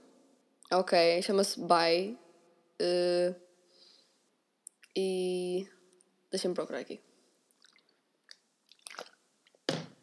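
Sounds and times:
speech: 0:00.7 - 0:02.2, 0:02.8 - 0:03.4, 0:05.0 - 0:07.1
person drinking water: 0:07.5 - 0:10.0.

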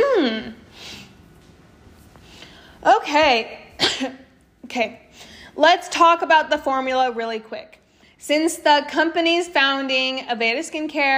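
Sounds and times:
speech: 0:02.8 - 0:11.1
cough: 0:03.8 - 0:04.2.

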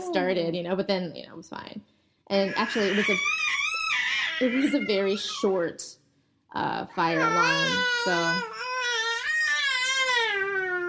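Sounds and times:
speech: 0:00.1 - 0:08.7
baby crying: 0:02.4 - 0:05.6, 0:07.0 - 0:10.8.

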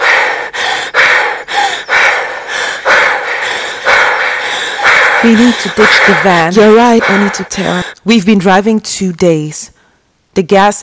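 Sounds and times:
out-of-breath gasping and panting: 0:00.0 - 0:08.0
speech: 0:05.2 - 0:09.7, 0:10.4 - 0:10.8.

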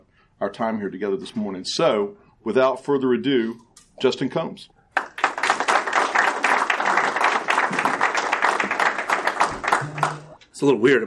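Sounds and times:
speech: 0:00.4 - 0:04.8, 0:10.6 - 0:11.0
crowd applauding: 0:05.0 - 0:10.4.

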